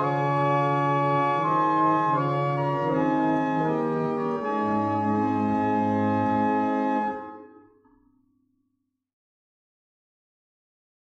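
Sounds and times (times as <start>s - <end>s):
barrel organs: 0.0s - 7.6s.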